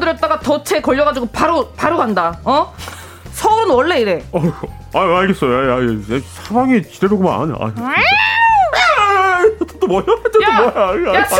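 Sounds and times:
speech: 0:00.1 - 0:08.3, 0:09.9 - 0:11.3
cat: 0:07.8 - 0:09.0
laughter: 0:08.8 - 0:11.3.

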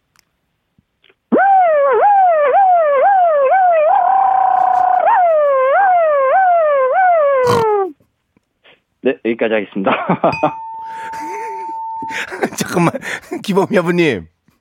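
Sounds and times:
voice imitating a tow truck siren: 0:01.3 - 0:07.9
speech: 0:09.3 - 0:11.0, 0:12.4 - 0:14.5
laughter: 0:09.9 - 0:13.7.

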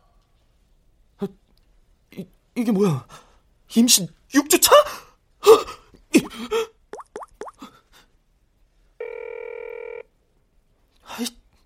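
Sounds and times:
speech: 0:01.2 - 0:01.4, 0:02.1 - 0:05.6
dripping plops: 0:06.9 - 0:07.6
telephone ringing: 0:09.0 - 0:10.1.

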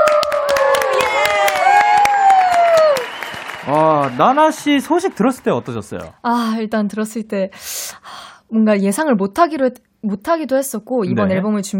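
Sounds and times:
crowd of high-pitched voices cheering and shrieking: 0:00.0 - 0:04.5
audience applause: 0:00.0 - 0:06.1
speech: 0:04.1 - 0:11.7.

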